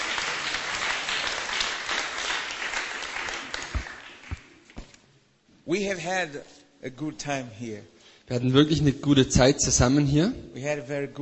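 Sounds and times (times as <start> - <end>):
church congregation applauding in praise of Jesus: 0.0 - 5.0
speech: 5.7 - 11.2.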